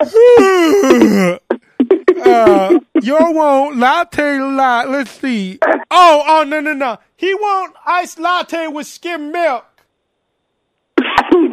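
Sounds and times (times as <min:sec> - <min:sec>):
speech: 0:00.0 - 0:01.4, 0:02.3 - 0:09.7
person imitating a yawn: 0:00.0 - 0:01.5
short clipped vocal bursts: 0:00.0 - 0:03.0.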